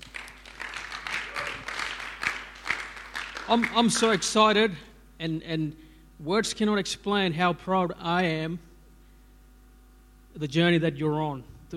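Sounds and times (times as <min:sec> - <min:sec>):
church audience applause: 0:00.0 - 0:04.2
speech: 0:03.5 - 0:08.7, 0:10.4 - 0:11.7.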